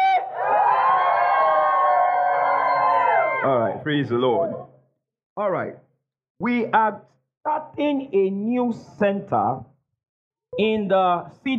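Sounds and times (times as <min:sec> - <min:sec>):
audience screaming and shouting: 0:00.0 - 0:03.8
speech: 0:03.4 - 0:04.7, 0:05.4 - 0:05.8, 0:06.4 - 0:09.7, 0:10.5 - 0:11.5.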